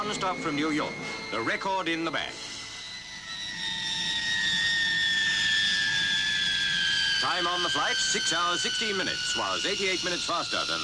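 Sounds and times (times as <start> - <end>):
blue and silver de Havilland Comet jet airliner engine roar at Hatfield: 0.0 - 10.8
speech: 0.1 - 2.5, 7.2 - 10.8.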